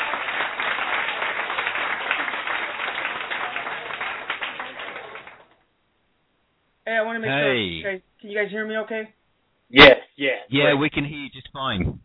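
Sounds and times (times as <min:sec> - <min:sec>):
crowd applauding: 0:00.0 - 0:05.6
speech: 0:07.0 - 0:12.0.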